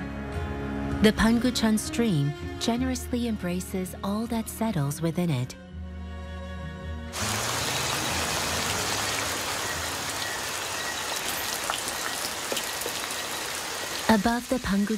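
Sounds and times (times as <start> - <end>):
speech: 1.0 - 5.6, 14.1 - 14.9
rain dripping from house eaves: 7.2 - 14.9.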